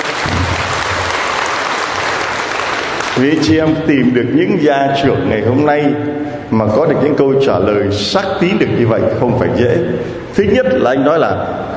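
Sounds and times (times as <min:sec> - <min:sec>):
church congregation applauding during a service: 0:00.0 - 0:04.0
speech: 0:03.2 - 0:11.7.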